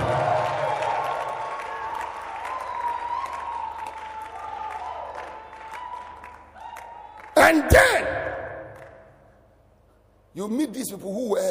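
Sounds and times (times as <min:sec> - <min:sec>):
crowd shouts and whoops: 0:00.0 - 0:08.6
large crowd clapping: 0:00.0 - 0:09.2
speech: 0:07.5 - 0:08.1, 0:10.4 - 0:11.4.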